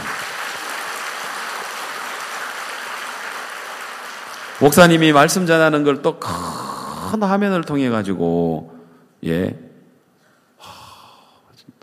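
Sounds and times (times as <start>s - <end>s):
crowd applauding: 0.0s - 5.5s
speech: 4.6s - 9.6s.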